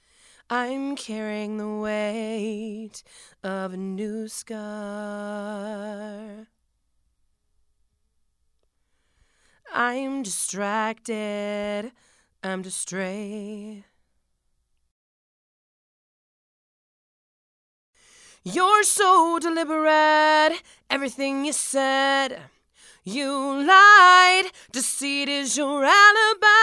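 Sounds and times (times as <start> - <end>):
female vocals: 0.4 - 6.5, 9.7 - 14.0, 18.3 - 26.6.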